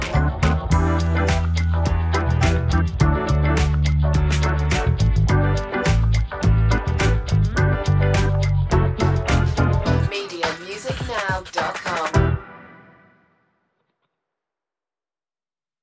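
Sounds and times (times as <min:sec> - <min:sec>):
playful funny bluesy track with bouncy bass: 0:00.0 - 0:12.4.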